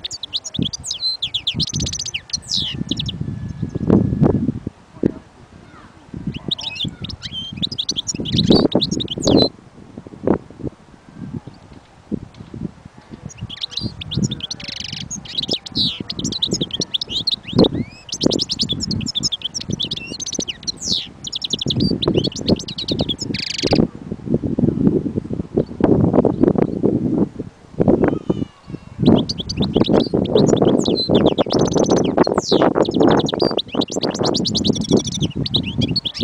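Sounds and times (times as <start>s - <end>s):
European goldfinch twittering song: 0.0s - 3.8s, 6.3s - 9.5s, 13.2s - 23.8s, 28.7s - 36.2s
low rumbling and rustling noise: 3.1s - 7.8s, 8.9s - 14.4s, 23.8s - 29.0s.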